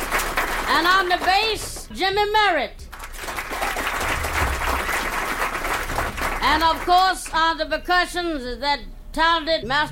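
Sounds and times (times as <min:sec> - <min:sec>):
audience applause: 0:00.0 - 0:01.5, 0:02.9 - 0:07.0
speech: 0:00.8 - 0:02.8, 0:06.4 - 0:09.9.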